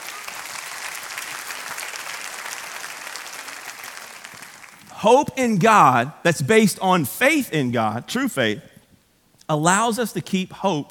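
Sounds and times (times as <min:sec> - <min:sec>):
audience clapping hands: 0:00.0 - 0:05.0
speech: 0:05.0 - 0:08.7, 0:09.5 - 0:10.9.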